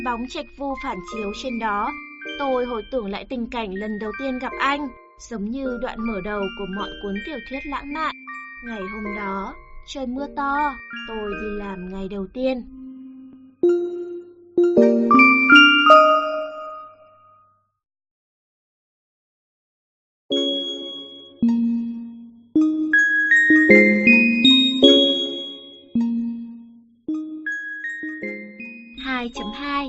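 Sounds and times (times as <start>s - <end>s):
shop door chime ding-dong: 0.0s - 3.2s, 5.9s - 12.1s, 12.7s - 17.4s, 20.3s - 29.8s
speech: 0.0s - 12.8s.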